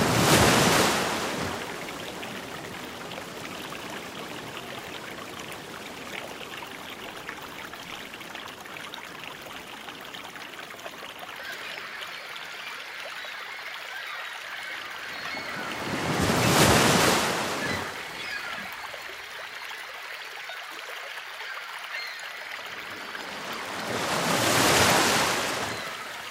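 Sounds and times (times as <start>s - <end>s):
ocean waves: 0.0s - 9.2s, 13.3s - 19.5s, 21.9s - 26.2s.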